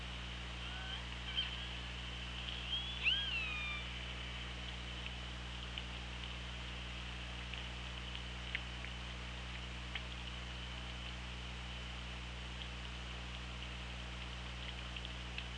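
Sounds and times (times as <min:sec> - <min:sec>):
underwater hum: 0:00.0 - 0:15.5
killer whale calls: 0:00.6 - 0:01.8, 0:02.5 - 0:04.4.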